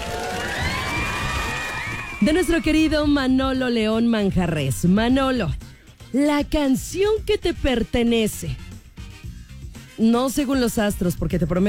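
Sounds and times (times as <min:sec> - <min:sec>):
crowd cheering for a birthday: 0:00.0 - 0:03.4
speech: 0:02.2 - 0:08.6, 0:10.0 - 0:11.6.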